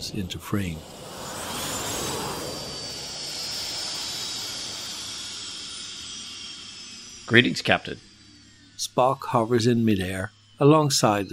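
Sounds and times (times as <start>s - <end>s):
speech: 0.0s - 1.0s, 7.3s - 8.1s, 8.8s - 11.3s
soft whooshing of levitation boots: 0.2s - 5.8s.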